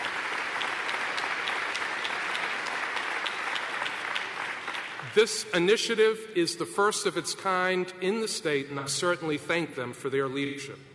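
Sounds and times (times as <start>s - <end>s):
round of applause: 0.0s - 5.3s
speech: 5.2s - 10.9s.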